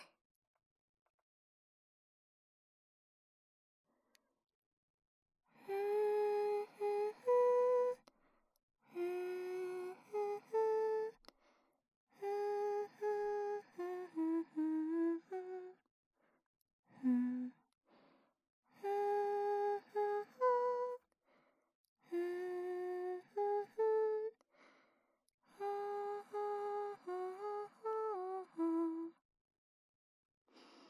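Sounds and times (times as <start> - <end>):
person singing a lullaby: 5.6 - 8.1, 8.9 - 11.2, 12.1 - 15.8, 16.9 - 17.6, 18.8 - 21.0, 22.0 - 24.4, 25.5 - 29.2.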